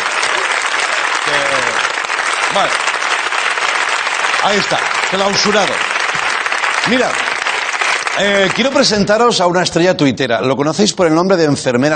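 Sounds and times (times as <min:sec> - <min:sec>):
audience applause for a band: 0:00.0 - 0:09.4
speech: 0:02.6 - 0:02.8, 0:04.4 - 0:05.9, 0:06.8 - 0:07.3, 0:08.2 - 0:11.9.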